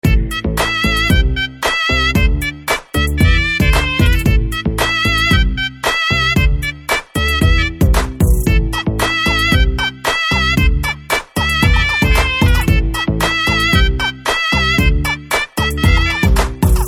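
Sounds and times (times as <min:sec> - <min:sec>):
Telugu background music ringtone: 0:00.0 - 0:16.8.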